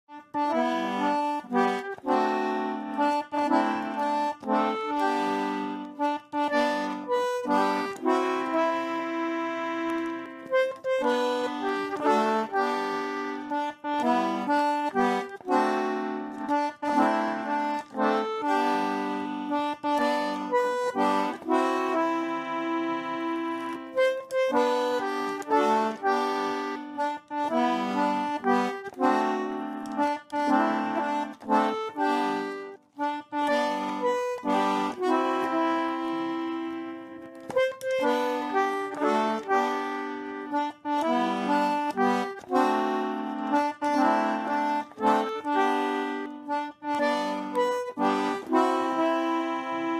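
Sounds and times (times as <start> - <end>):
concertina playing: 0.0 - 49.9.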